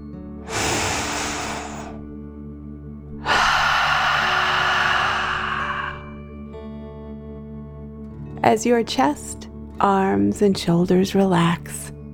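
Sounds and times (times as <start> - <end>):
deep breath in and out: 0.4 - 2.1, 3.2 - 6.3
speech: 8.4 - 11.9.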